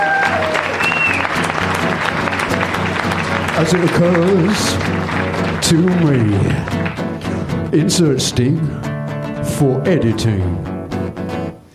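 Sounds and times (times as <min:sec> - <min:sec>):
theatre audience applause: 0:00.0 - 0:07.6
speech: 0:03.6 - 0:06.9, 0:07.7 - 0:08.8, 0:09.6 - 0:10.7.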